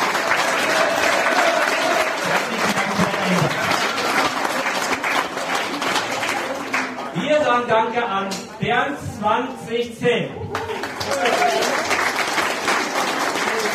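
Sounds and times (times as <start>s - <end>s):
audience applause: 0.0s - 7.1s, 10.5s - 13.7s
speech: 7.6s - 10.4s.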